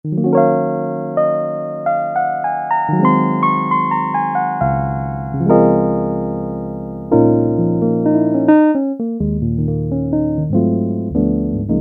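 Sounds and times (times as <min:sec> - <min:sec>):
piano: 0:00.1 - 0:11.7.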